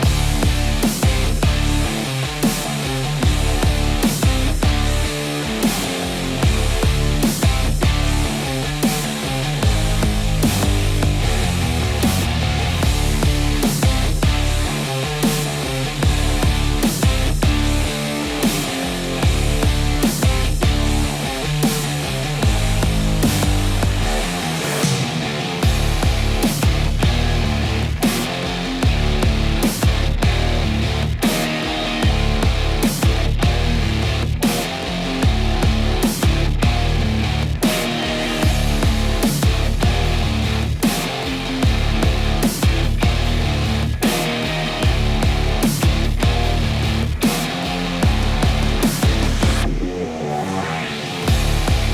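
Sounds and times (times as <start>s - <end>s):
forest fighting music loop: 0.0s - 51.9s.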